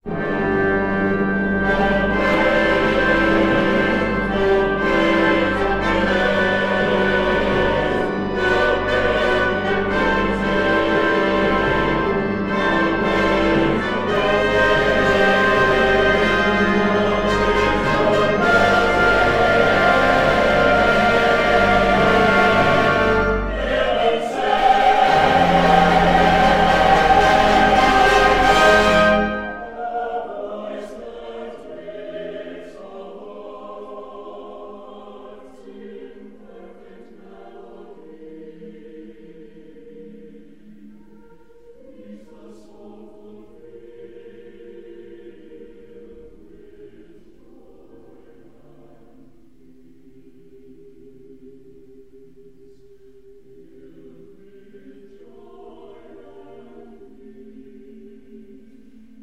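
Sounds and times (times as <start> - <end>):
fanfare: 0.2 - 30.6.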